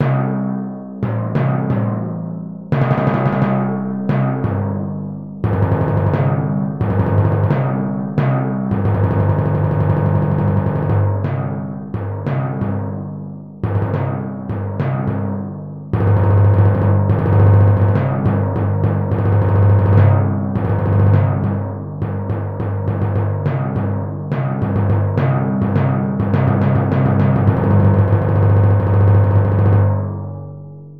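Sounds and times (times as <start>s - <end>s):
timpani: 0.0s - 30.7s.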